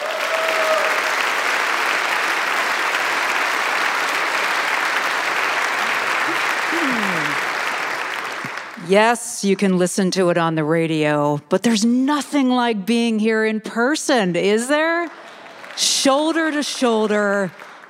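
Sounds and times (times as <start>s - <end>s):
audience applause: 0.0s - 8.8s, 14.8s - 17.8s
speech: 8.9s - 15.2s, 15.8s - 17.8s.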